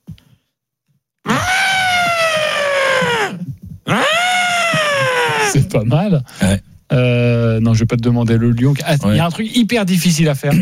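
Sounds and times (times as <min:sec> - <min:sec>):
person imitating an elephant trumpeting: 0:01.2 - 0:05.7
speech: 0:05.7 - 0:10.6.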